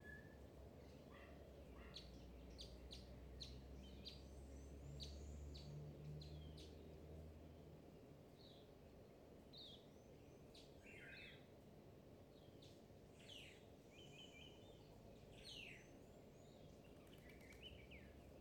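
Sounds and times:
birds in a park: 0.0 - 18.4.

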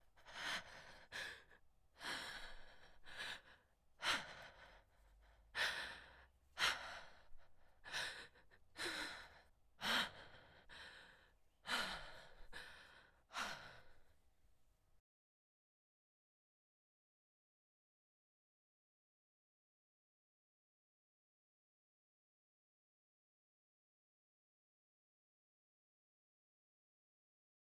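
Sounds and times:
woman breathing heavily: 0.0 - 14.2.

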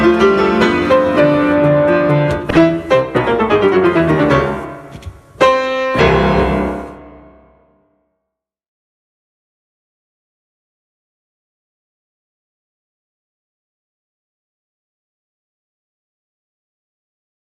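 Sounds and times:
clumsy raucous progressive piano improvisation: 0.0 - 7.6.

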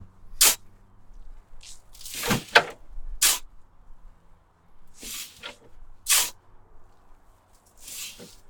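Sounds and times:
shoveling sand: 0.4 - 0.6, 1.6 - 3.5, 5.0 - 6.4, 7.8 - 8.4.

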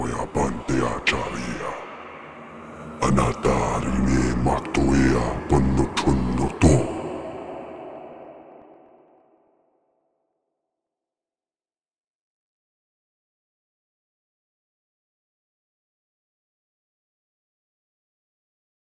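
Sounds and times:
demonic chanting: 0.0 - 9.8.

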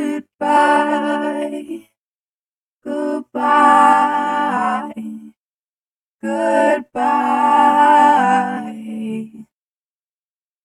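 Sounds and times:
choir singing goodbyes: 0.0 - 1.9, 2.8 - 5.4, 6.2 - 9.5.

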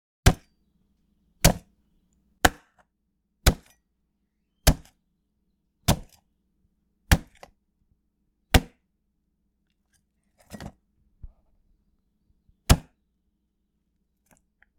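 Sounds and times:
knife cutting watermelon skin: 0.3 - 0.6, 1.4 - 1.7, 2.4 - 2.8, 3.4 - 3.8, 4.6 - 5.0, 5.8 - 6.2, 7.1 - 7.6, 8.5 - 8.8, 12.7 - 13.0.

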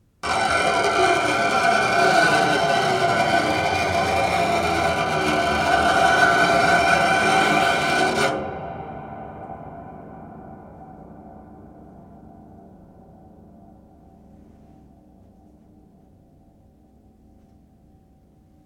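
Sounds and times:
scrapes: 0.2 - 8.5.

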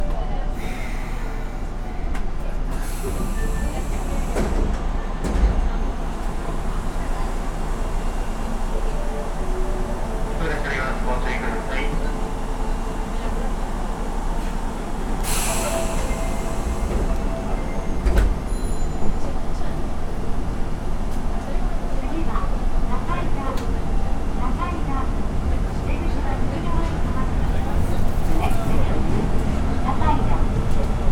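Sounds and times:
metro ambience in Japan: 0.0 - 31.0.

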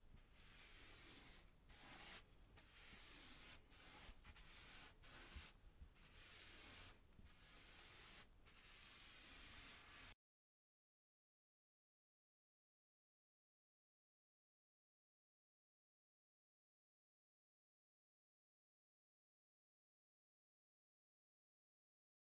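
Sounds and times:
painting a wall: 0.1 - 10.2.

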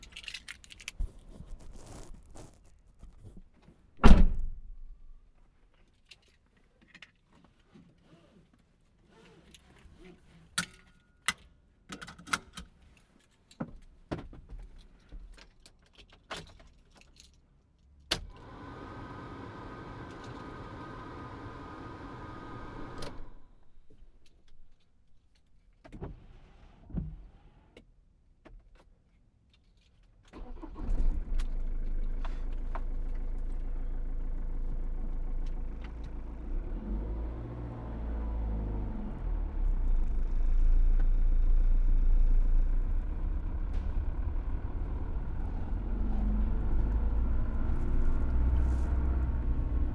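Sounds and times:
Ford Transit door: 4.0 - 4.7
Ford Transit engine starting: 18.3 - 23.9, 30.3 - 49.9.

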